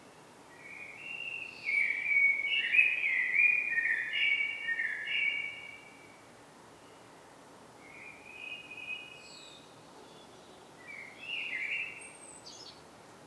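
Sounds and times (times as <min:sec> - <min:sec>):
common blackbird Turdus merula song: 0:00.6 - 0:05.9, 0:07.8 - 0:12.9.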